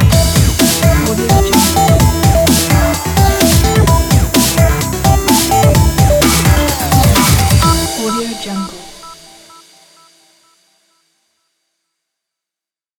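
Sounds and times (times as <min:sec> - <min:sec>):
news logo ident jingle: 0:00.1 - 0:10.2.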